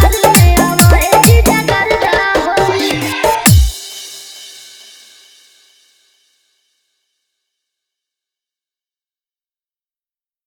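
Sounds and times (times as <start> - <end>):
hard bass dance mix: 0.0 - 3.8.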